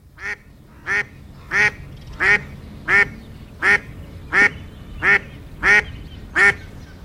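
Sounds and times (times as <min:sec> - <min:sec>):
duck quacking: 0:00.2 - 0:06.7.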